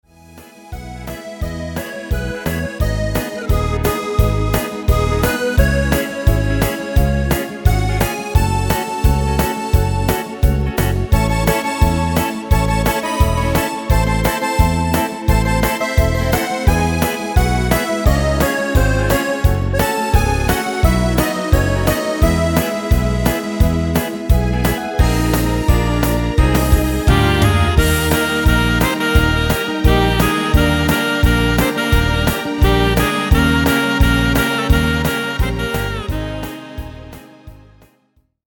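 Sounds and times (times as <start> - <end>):
saxophone medley: 0.4 - 37.8.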